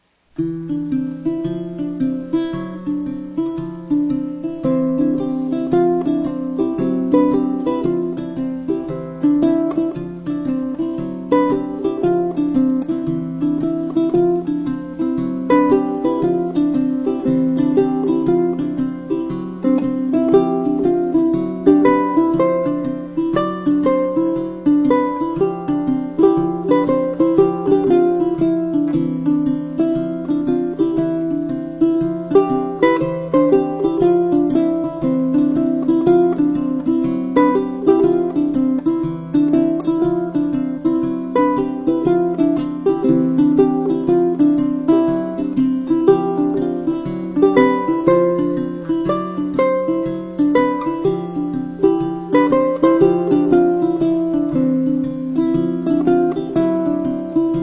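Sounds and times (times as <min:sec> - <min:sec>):
ukulele: 0:00.0 - 0:57.6.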